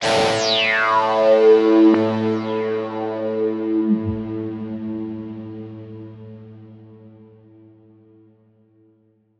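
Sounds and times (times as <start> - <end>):
guitar notes A: 0.0 - 6.6.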